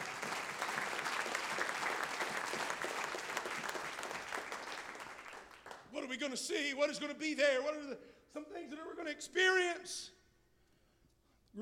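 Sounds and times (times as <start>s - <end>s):
audience clapping hands: 0.0s - 5.9s
speech: 6.1s - 10.2s.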